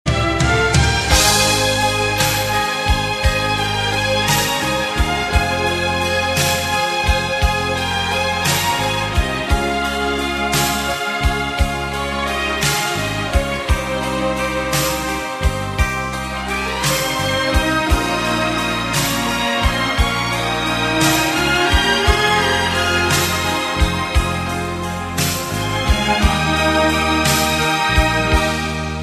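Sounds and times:
Iraqi music: 0.1s - 29.0s.

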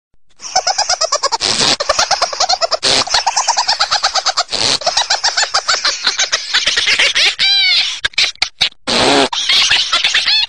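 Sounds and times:
person laughing crazily: 0.4s - 10.4s.

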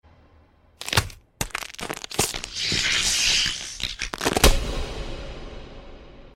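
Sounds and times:
neck breaking: 0.8s - 4.7s.

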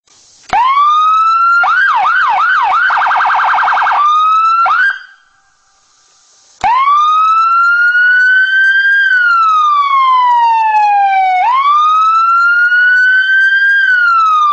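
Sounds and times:
ambulance siren: 0.6s - 5.3s, 6.6s - 14.5s.

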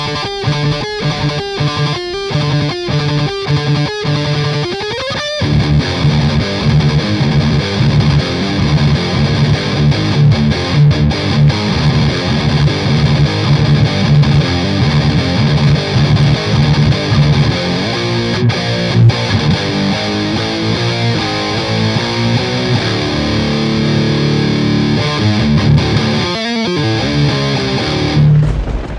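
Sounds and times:
guitar: 0.0s - 28.9s.

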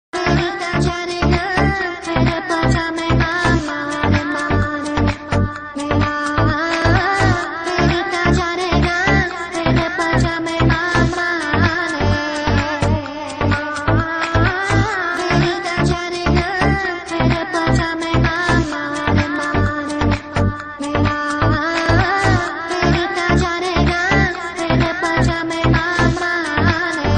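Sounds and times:
Indian house style music: 0.2s - 27.1s.

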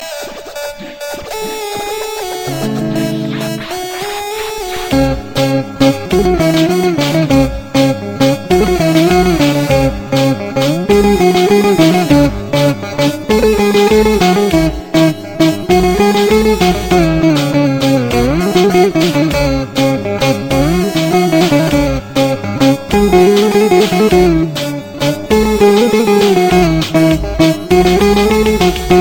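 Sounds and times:
rumba music mix: 2.2s - 29.0s.

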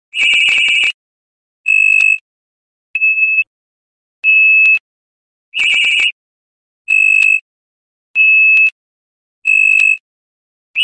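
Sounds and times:
iPhone alarm: 0.2s - 1.0s, 1.7s - 2.2s, 3.0s - 3.5s, 4.2s - 4.8s, 5.6s - 6.2s, 6.9s - 7.5s, 8.2s - 8.8s, 9.4s - 10.0s.

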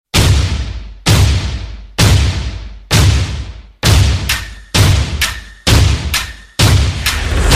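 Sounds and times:
drum beat: 0.1s - 7.4s.

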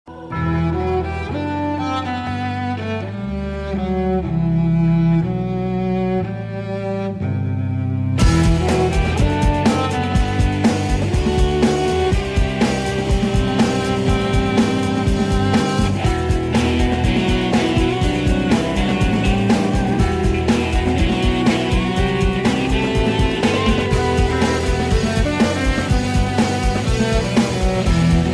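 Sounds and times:
violin: 0.1s - 28.3s.

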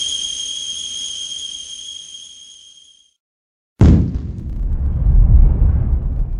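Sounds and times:
small bomb drop: 3.8s - 6.3s.

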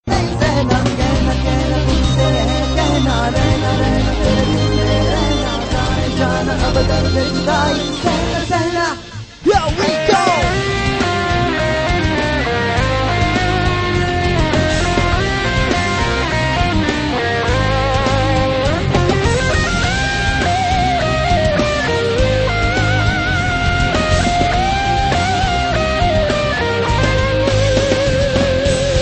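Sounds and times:
rhythm guitar: 0.0s - 29.0s.

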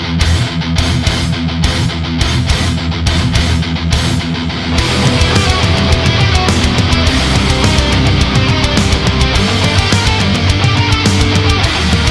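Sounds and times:
death metal music: 0.1s - 12.0s.

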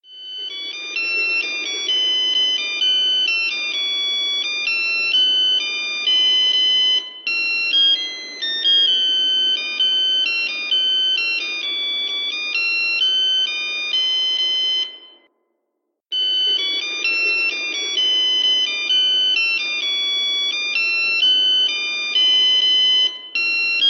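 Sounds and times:
morning alarm sound: 0.0s - 15.3s, 16.1s - 23.8s.

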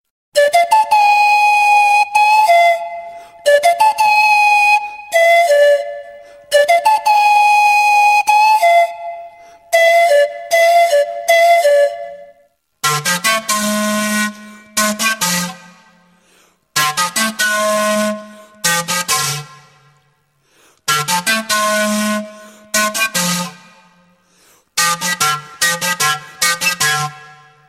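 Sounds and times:
flutes: 0.3s - 20.1s, 20.9s - 27.6s.

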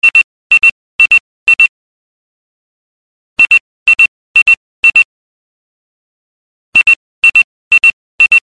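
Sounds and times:
simple pager beep: 0.0s - 1.8s, 3.4s - 5.1s, 6.8s - 8.4s.

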